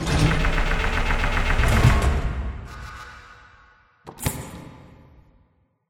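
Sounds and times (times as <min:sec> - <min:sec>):
jammed doors rattling: 0:00.0 - 0:02.5.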